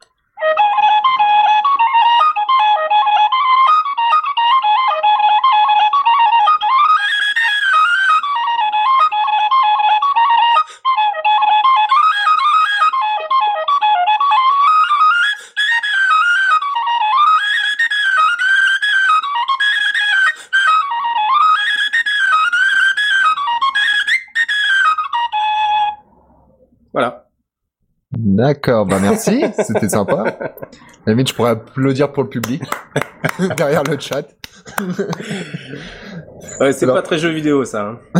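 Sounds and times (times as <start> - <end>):
small metal tin whistle playing a tune: 0.4 - 26.3
speech: 28.4 - 38.1
laughter: 28.9 - 31.0, 32.4 - 36.3.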